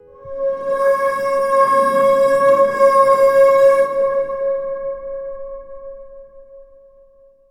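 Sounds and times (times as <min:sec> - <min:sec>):
horn: 0:00.0 - 0:05.6.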